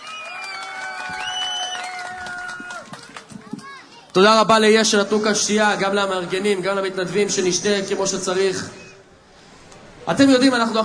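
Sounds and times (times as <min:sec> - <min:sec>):
audience applause for the deputy mayor of Petah Tikva at a high school: 0:00.0 - 0:03.8
crowd cheering: 0:00.0 - 0:03.9
speech: 0:04.2 - 0:08.8, 0:10.1 - 0:10.8.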